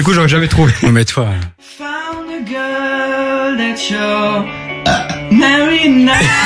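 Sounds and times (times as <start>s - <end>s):
speech: 0.0s - 1.8s, 3.5s - 6.4s
burp: 4.8s - 5.3s.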